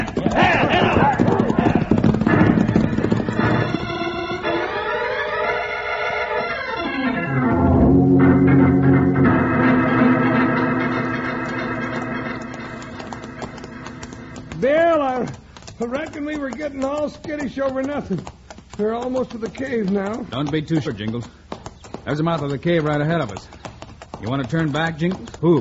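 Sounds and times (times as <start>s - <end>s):
horses' hooves clip-clopping at a gallop: 0.0s - 7.6s, 9.2s - 25.6s
loud dramatic music: 6.8s - 14.4s
speech: 16.7s - 21.4s, 22.1s - 23.6s, 24.2s - 25.6s.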